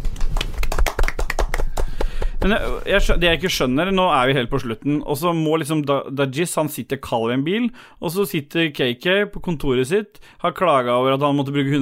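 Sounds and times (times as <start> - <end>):
small group applause: 0.0 - 2.6
speech: 2.4 - 11.8.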